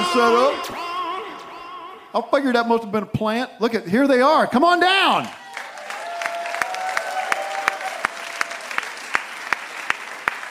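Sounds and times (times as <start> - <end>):
speech: 0.1 - 0.8, 2.1 - 5.4
tepid audience applause: 5.3 - 10.4.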